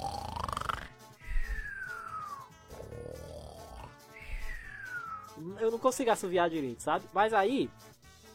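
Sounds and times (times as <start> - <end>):
person imitating a cartoon snore: 0.0 - 5.3
speech: 5.4 - 7.9.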